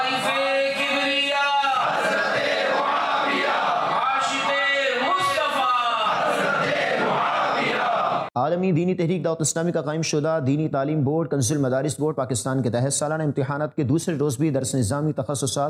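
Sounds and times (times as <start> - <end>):
crowd chanting religious slogans at a religious gathering: 0.0 - 8.3
speech: 8.4 - 15.6.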